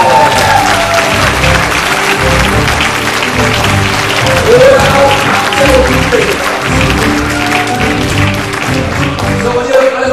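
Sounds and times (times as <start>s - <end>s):
audience applause: 0.0s - 10.0s.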